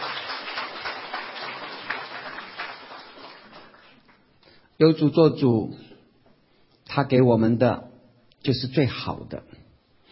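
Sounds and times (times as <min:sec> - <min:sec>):
applause: 0:00.0 - 0:04.5
speech: 0:04.8 - 0:05.8, 0:06.9 - 0:09.6.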